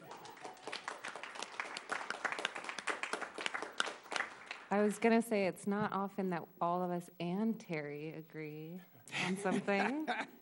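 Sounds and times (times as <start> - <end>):
round of applause: 0.0 - 4.7
speech: 4.7 - 10.4.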